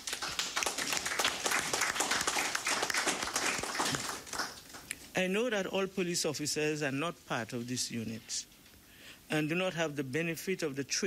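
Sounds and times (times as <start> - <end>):
audience applause: 0.0 - 4.9
speech: 5.2 - 8.5, 9.3 - 11.0.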